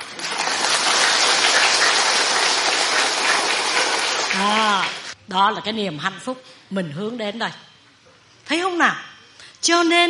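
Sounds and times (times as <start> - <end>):
audience clapping at a Buddhist dharma talk: 0.0 - 5.2
speech: 4.4 - 7.7, 8.5 - 10.0.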